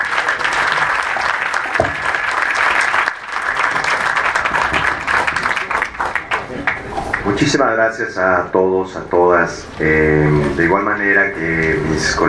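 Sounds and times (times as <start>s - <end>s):
audience applause: 0.0s - 7.5s
speech: 7.3s - 12.2s.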